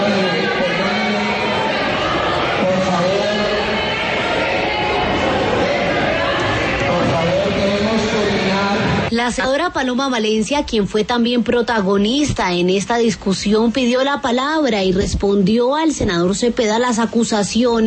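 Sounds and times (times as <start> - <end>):
shouting in a congressional chamber: 0.0 - 9.1
speech: 9.3 - 17.8.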